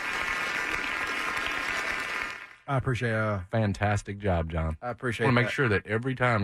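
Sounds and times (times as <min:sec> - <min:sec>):
audience round of applause on a sports talk show: 0:00.0 - 0:02.6
speech: 0:02.7 - 0:06.4.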